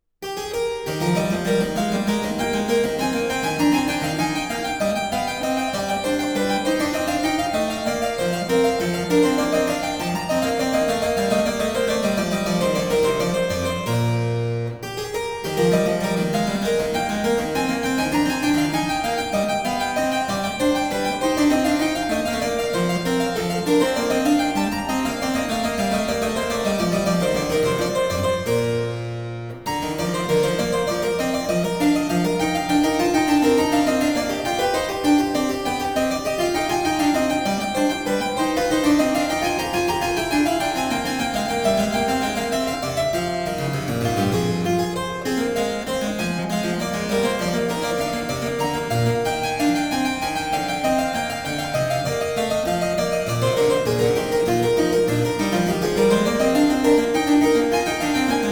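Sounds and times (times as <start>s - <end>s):
keyboard bourree in E major: 0.4s - 58.5s.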